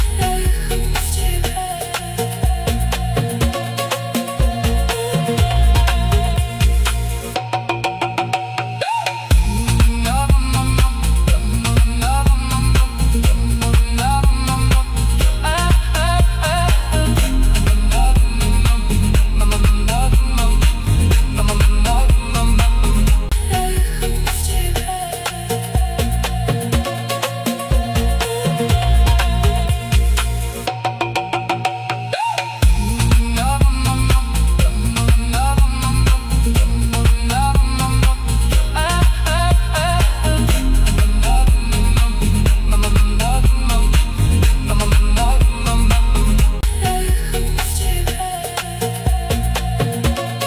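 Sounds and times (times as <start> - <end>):
Afro deep house mix: 0.0 - 31.8, 32.6 - 50.4.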